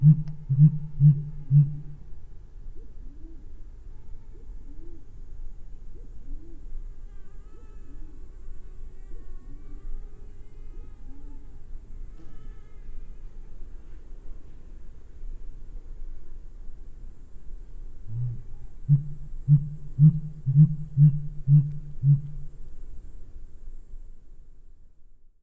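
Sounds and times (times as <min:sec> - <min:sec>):
Sooty Grouse song: 0:00.0 - 0:02.0, 0:18.1 - 0:22.6.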